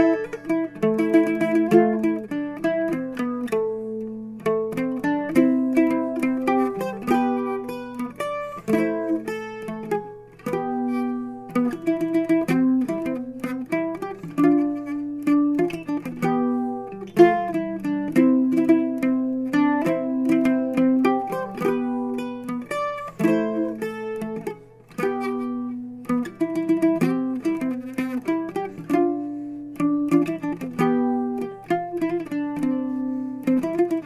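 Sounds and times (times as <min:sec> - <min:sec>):
slow fandango music: 0:00.0 - 0:34.0.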